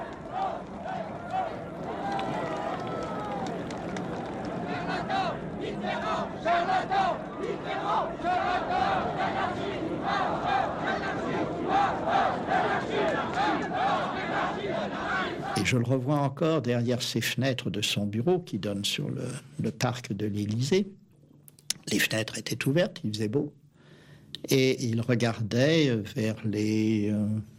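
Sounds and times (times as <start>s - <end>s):
crowd gathering at political demonstration: 0.0s - 15.6s
speech: 15.6s - 21.0s, 21.9s - 23.6s, 24.3s - 27.5s.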